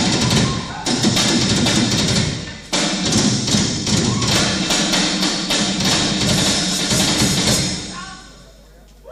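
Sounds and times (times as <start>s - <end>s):
drum solo: 0.0s - 8.4s.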